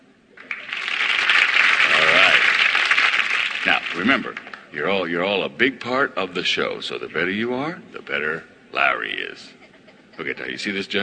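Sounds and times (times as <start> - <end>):
studio audience applause: 0.4 - 4.7
speech: 3.6 - 9.6, 10.2 - 11.0.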